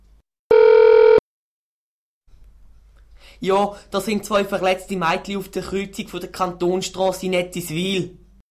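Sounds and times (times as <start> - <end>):
telephone dial tone: 0.5 - 1.2
speech: 3.4 - 8.2.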